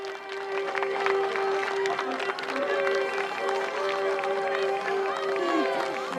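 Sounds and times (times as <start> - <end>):
crowd clapping: 0.0 - 6.1
sustained musical tone: 0.0 - 6.1.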